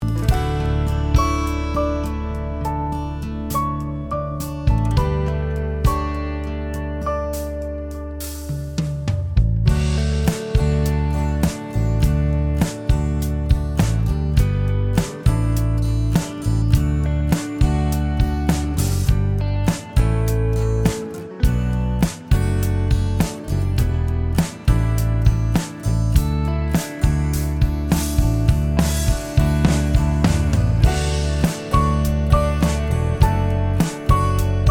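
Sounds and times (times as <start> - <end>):
instrumental music: 0.0 - 34.6.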